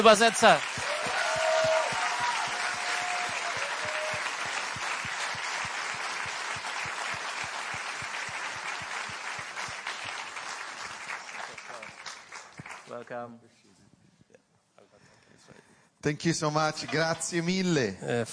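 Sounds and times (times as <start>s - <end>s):
speech: 0.0s - 0.8s, 13.1s - 13.6s, 16.0s - 18.3s
audience applause: 0.0s - 13.0s.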